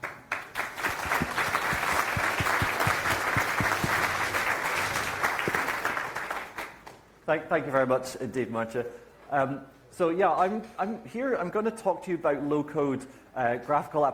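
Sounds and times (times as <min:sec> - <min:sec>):
audience applause: 0:00.0 - 0:06.8
speech: 0:07.3 - 0:14.1.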